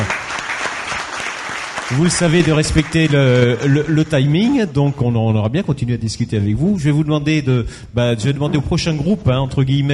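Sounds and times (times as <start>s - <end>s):
audience applause: 0.0s - 4.2s
speech: 1.9s - 9.9s.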